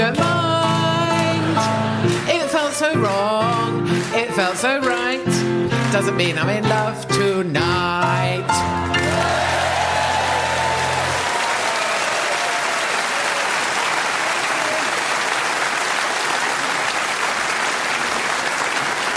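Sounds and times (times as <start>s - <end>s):
sung song with accompaniment: 0.0s - 11.2s
large audience clapping along: 0.1s - 6.8s, 8.8s - 19.1s
speech: 4.2s - 8.7s.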